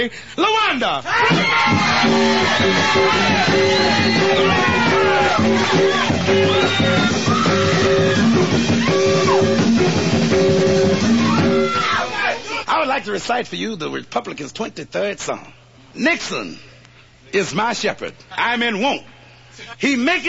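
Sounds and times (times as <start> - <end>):
speech: 0.0 - 16.7, 17.3 - 20.2
audience cheering and whooping: 1.1 - 12.4
audience applause: 1.3 - 9.6
band playing short repeated chords: 1.3 - 12.0.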